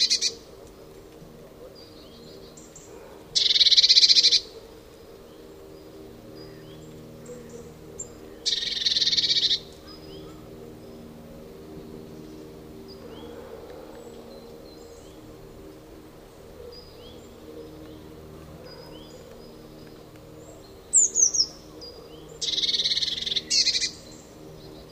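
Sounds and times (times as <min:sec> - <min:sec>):
Eurasian blue tit Cyanistes caeruleus churring call: 0:00.0 - 0:00.4, 0:03.4 - 0:04.6, 0:08.4 - 0:10.4, 0:22.4 - 0:24.1.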